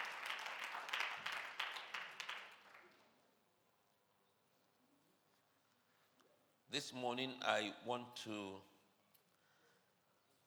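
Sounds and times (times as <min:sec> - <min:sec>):
audience clapping in praise: 0:00.0 - 0:03.0
speech: 0:06.7 - 0:08.7.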